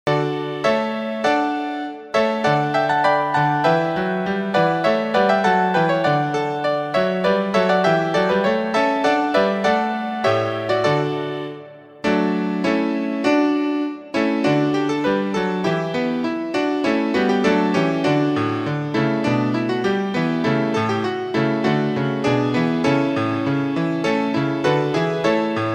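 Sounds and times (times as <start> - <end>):
musical accompaniment: 0.1 - 25.7.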